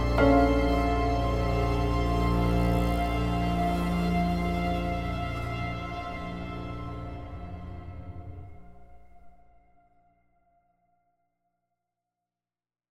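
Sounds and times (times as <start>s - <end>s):
suspenseful film score: 0.0s - 9.8s.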